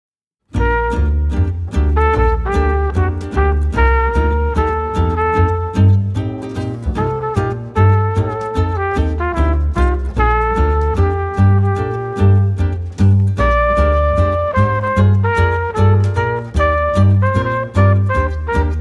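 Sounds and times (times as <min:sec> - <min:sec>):
romantic wedding party jazz: 0:00.6 - 0:18.7.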